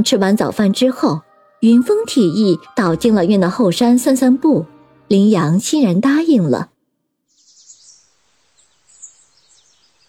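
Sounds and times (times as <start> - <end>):
speech: 0.0 - 6.7
birdsong in a forest: 7.2 - 10.0.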